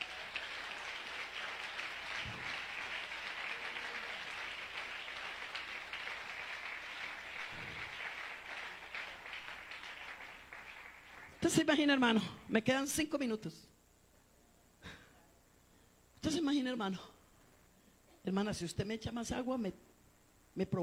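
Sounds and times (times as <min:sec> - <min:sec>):
audience applause: 0:00.0 - 0:11.5
speech: 0:11.5 - 0:13.7, 0:16.7 - 0:17.2, 0:18.3 - 0:19.9, 0:20.6 - 0:20.8.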